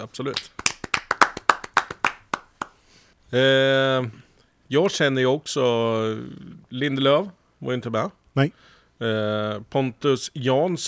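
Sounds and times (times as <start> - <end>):
speech: 0.0 - 0.6, 3.3 - 10.8
applause: 0.3 - 2.8.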